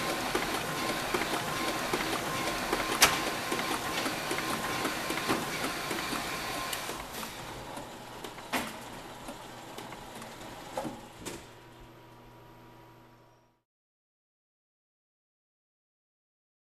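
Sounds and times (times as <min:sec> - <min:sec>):
industrial planer machine: 0:00.0 - 0:10.6
heat press: 0:00.0 - 0:11.6.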